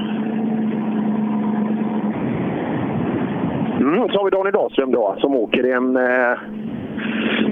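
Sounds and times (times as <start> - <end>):
Mitsubishi Mirage R5 rally car engine driving: 0.0 - 7.5
speech: 3.9 - 7.4.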